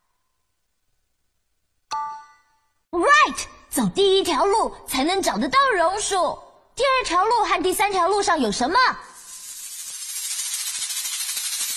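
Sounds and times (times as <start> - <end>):
speech: 3.4 - 9.1
snakes hissing in a cave: 9.1 - 11.7.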